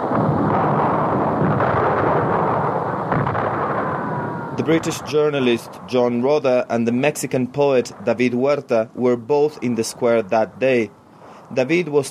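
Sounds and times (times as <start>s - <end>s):
continuous gunfire: 0.1s - 3.9s
speech: 4.7s - 12.0s.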